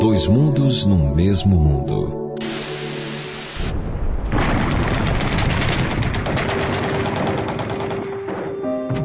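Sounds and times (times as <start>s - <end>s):
speech: 0.2s - 2.2s
bombs exploding and missiles being launched in real war footage: 3.6s - 9.0s.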